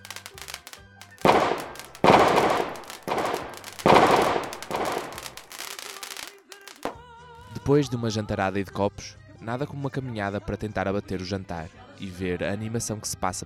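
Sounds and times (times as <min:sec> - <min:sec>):
fireworks battery exploding: 0:00.0 - 0:07.0
speech: 0:07.7 - 0:13.4.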